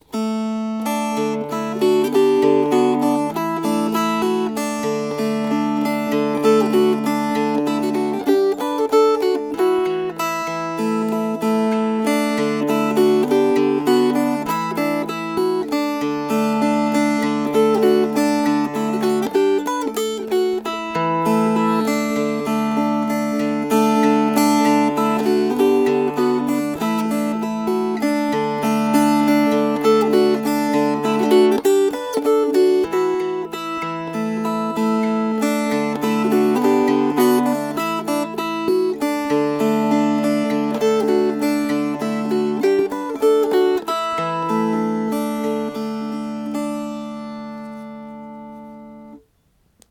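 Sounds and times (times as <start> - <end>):
fingerpicked strings: 0.0 - 49.8.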